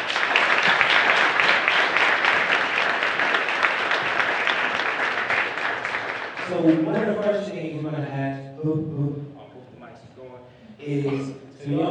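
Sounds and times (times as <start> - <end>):
crowd applause: 0.0 - 7.5
speech: 6.5 - 9.2, 10.8 - 11.8.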